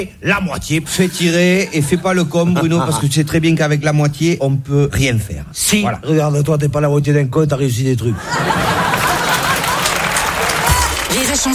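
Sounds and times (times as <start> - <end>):
speech: 0.0 - 8.9, 11.3 - 11.5
laughter: 1.0 - 3.3, 8.1 - 10.8
audience applause at a comedy and song show: 8.3 - 11.5.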